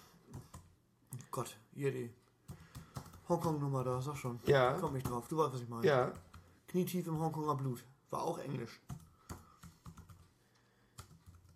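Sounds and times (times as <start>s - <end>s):
typing on a computer keyboard: 0.2s - 0.8s, 2.4s - 3.8s, 4.5s - 6.6s, 8.8s - 11.5s
speech: 1.3s - 2.2s, 3.3s - 9.0s.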